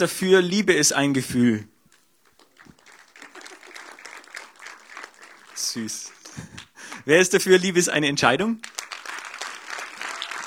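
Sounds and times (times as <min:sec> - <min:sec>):
speech: 0:00.0 - 0:01.7, 0:05.7 - 0:08.7
audience applause as a vote: 0:02.2 - 0:07.1, 0:08.6 - 0:10.4.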